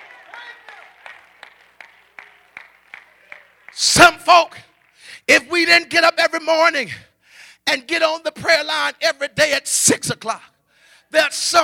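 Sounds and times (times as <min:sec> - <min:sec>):
audience clapping hands in a rhythmic beat: 0:00.0 - 0:05.2
speech: 0:03.8 - 0:04.6, 0:05.3 - 0:07.1, 0:07.7 - 0:10.5, 0:11.1 - 0:11.6.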